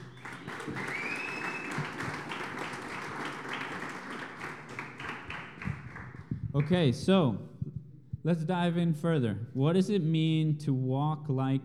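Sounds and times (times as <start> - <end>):
congregation applauding in church: 0.0 - 7.0
speech: 6.6 - 7.5, 8.2 - 11.6.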